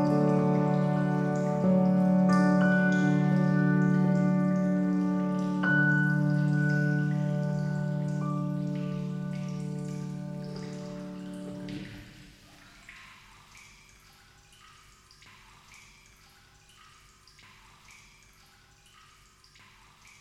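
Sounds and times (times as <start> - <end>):
piano improvisation: 0.0 - 12.0.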